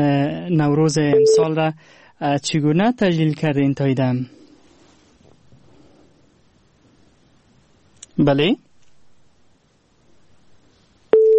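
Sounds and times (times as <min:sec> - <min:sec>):
speech: 0:00.0 - 0:04.4, 0:08.2 - 0:08.6
telephone busy tone after a listener's call is cut off: 0:01.1 - 0:01.5, 0:11.2 - 0:11.3.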